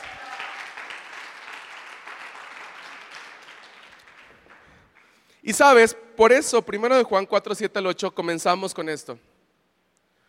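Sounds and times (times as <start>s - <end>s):
audience applauding: 0.0s - 5.2s
speech: 5.4s - 9.3s.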